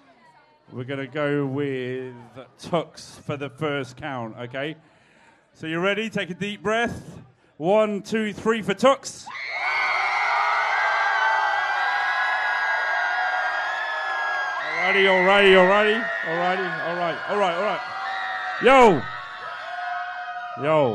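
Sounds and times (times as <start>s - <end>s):
speech: 0.7s - 4.9s, 5.6s - 9.6s, 14.9s - 17.9s, 18.6s - 19.2s, 20.6s - 20.9s
crowd cheering: 9.3s - 20.9s.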